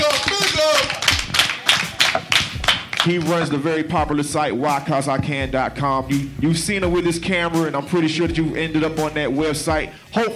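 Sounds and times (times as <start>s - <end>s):
audience applause: 0.0s - 3.3s
speech: 3.0s - 10.3s.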